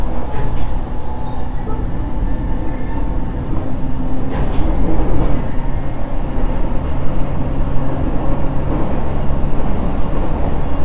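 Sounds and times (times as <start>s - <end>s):
JR Kyushu 817 series train running on the Fukuhoku Yutaka Line: 0.0s - 10.8s.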